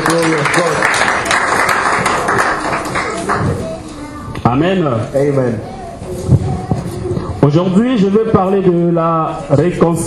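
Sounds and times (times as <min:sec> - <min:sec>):
church congregation applauding for the glory of God after a prayer: 0:00.0 - 0:03.6
speech: 0:04.5 - 0:06.4, 0:07.4 - 0:10.0.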